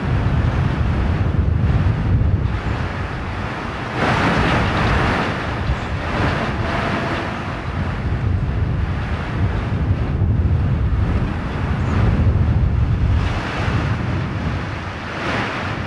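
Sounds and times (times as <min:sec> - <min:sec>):
wind outside: 0:00.0 - 0:15.8.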